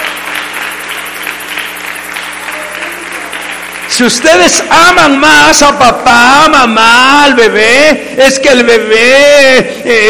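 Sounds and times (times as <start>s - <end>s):
audience applause: 0.0s - 5.6s
speech: 4.0s - 10.0s.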